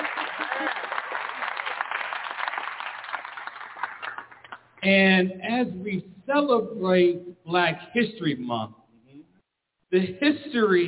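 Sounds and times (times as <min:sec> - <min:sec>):
audience applause: 0:00.0 - 0:04.7
speech: 0:04.8 - 0:08.8, 0:09.9 - 0:10.8.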